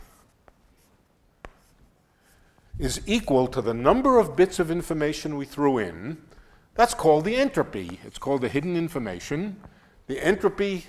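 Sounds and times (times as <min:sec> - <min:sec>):
chalk writing on a blackboard: 0:00.0 - 0:01.9
speech: 0:02.8 - 0:10.8.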